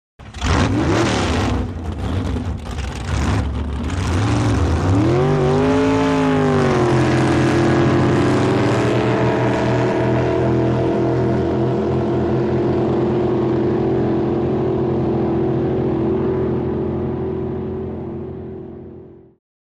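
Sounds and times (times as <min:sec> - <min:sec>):
drag boat engine starting and revving: 0:00.2 - 0:19.2.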